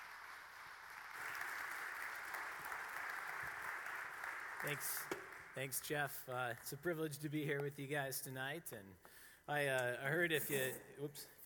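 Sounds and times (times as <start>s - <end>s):
audience applause welcoming a speaker: 0.0s - 5.7s
speech: 4.6s - 11.4s.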